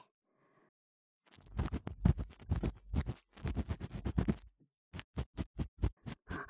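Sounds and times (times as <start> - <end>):
high-speed deep ear cleaning in the right ear: 1.3 - 6.4.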